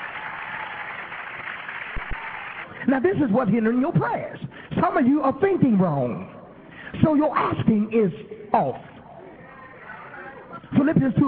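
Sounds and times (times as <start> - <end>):
church audience clapping hands in praise: 0.0 - 2.8
speech: 2.9 - 6.3, 7.0 - 8.9, 10.9 - 11.2.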